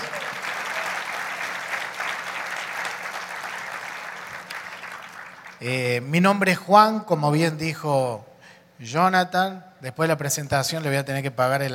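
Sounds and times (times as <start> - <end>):
applause: 0.0 - 5.8
speech: 5.6 - 11.7.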